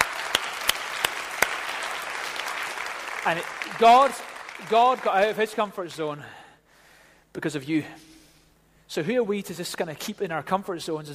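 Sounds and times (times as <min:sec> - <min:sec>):
audience applause: 0:00.0 - 0:05.7
speech: 0:03.2 - 0:06.4, 0:07.4 - 0:08.1, 0:08.9 - 0:11.1.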